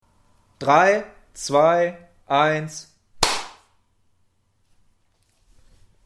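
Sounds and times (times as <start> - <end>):
speech: 0.6 - 2.9
hand clap for recording sync: 3.2 - 3.7.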